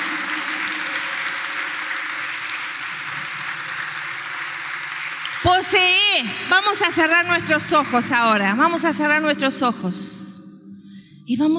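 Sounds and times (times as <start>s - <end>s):
audience applause: 0.0s - 6.0s
speech: 5.6s - 10.2s, 11.3s - 11.5s.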